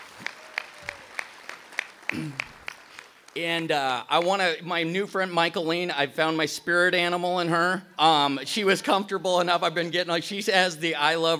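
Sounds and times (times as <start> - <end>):
audience clapping rhythmically: 0.0 - 3.4
speech: 2.1 - 2.6, 3.4 - 11.3.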